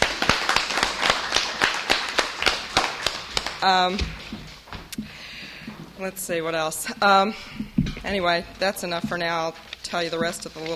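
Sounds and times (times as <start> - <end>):
round of applause: 0.0 - 3.6
speech: 3.6 - 4.5, 6.0 - 10.7.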